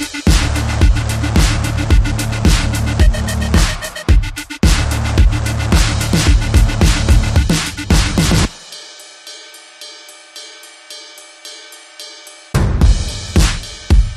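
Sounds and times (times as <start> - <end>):
bass: 0.0 - 8.5, 12.6 - 14.1
synths: 0.0 - 8.6.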